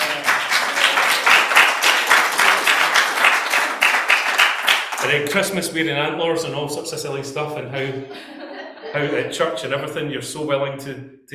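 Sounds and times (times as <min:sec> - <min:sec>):
crowd round of applause: 0:00.0 - 0:05.5
speech: 0:05.1 - 0:11.3
laughter: 0:07.7 - 0:10.0.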